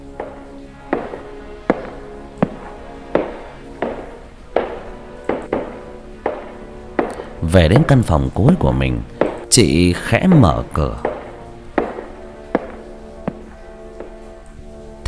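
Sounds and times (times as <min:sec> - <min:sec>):
woman's heeled footsteps echoing in a third-floor hallway: 0:00.9 - 0:07.2, 0:09.2 - 0:09.5, 0:11.0 - 0:14.2
speech: 0:07.6 - 0:11.0.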